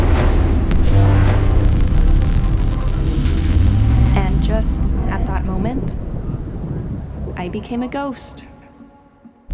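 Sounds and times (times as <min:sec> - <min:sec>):
warping stuttering thunder sound effect: 0:00.0 - 0:07.6
speech: 0:07.5 - 0:08.5.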